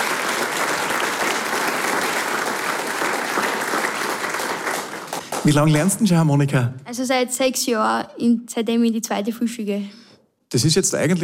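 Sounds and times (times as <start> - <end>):
audience applause: 0.0 - 6.1
speech: 5.4 - 11.2.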